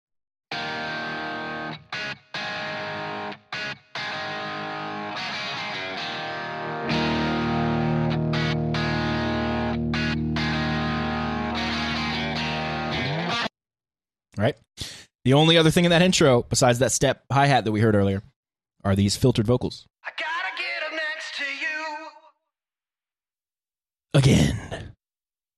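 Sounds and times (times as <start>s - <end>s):
slightly distorted electric guitar with a P90 pickup playing chords: 0.5s - 13.5s
speech: 14.4s - 20.2s, 24.2s - 24.9s.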